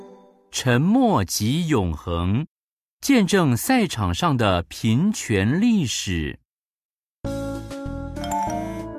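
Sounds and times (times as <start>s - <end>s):
speech: 0.5s - 2.5s, 3.0s - 6.4s
electronic message notification chime: 8.2s - 8.8s.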